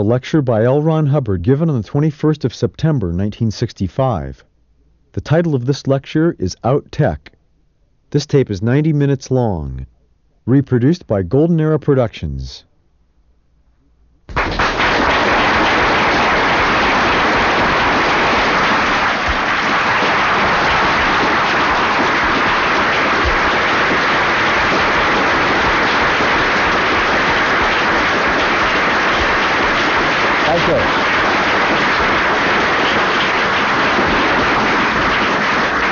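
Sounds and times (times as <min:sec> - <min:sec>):
speech: 0:00.0 - 0:04.5, 0:05.2 - 0:07.3, 0:08.1 - 0:12.7
large audience loud applause: 0:14.3 - 0:35.8.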